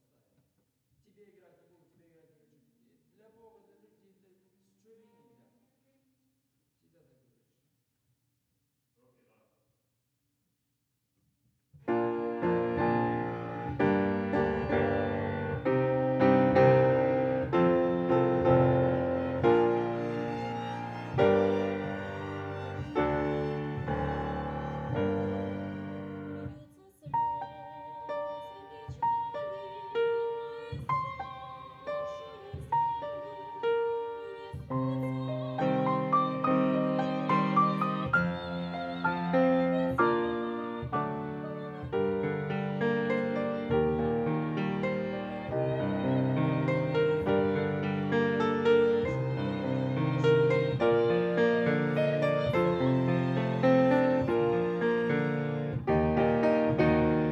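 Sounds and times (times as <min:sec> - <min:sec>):
piano: 0:11.8 - 0:57.2.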